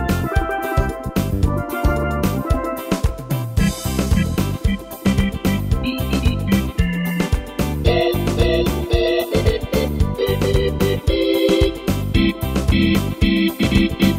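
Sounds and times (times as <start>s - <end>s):
calypso latin style on an arranger keyboard: 0.0s - 14.1s.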